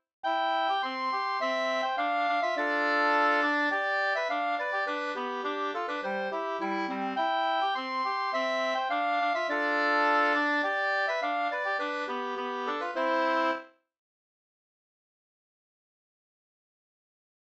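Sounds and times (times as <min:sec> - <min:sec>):
two-part polska dance tune: 0:00.3 - 0:13.6.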